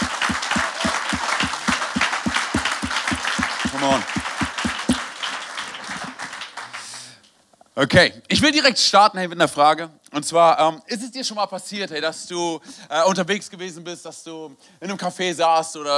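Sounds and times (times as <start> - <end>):
rhythmic clapping: 0.0 - 6.9
crowd applauding: 0.0 - 7.0
speech: 3.8 - 4.2, 7.8 - 15.9.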